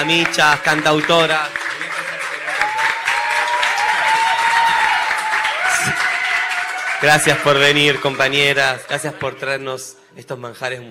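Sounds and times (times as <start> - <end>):
speech: 0.0 - 1.6, 7.0 - 10.8
audience applause: 0.0 - 9.6.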